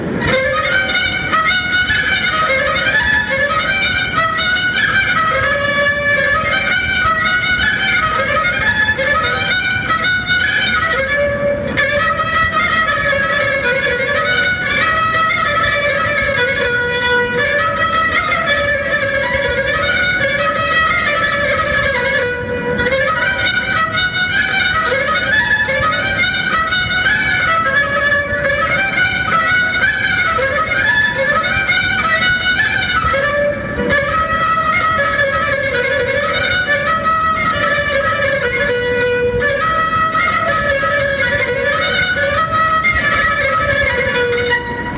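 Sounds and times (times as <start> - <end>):
Romanian folk dance music from Vaslui: 0.0 - 44.9.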